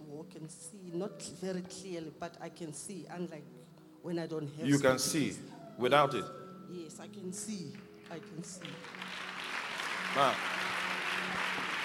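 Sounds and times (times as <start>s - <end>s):
speech: 0.3s - 9.3s, 10.1s - 10.7s
audience clapping: 7.7s - 11.8s.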